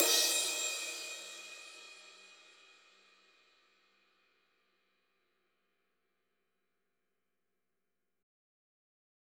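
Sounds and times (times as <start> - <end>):
cymbal: 0.0 - 3.7.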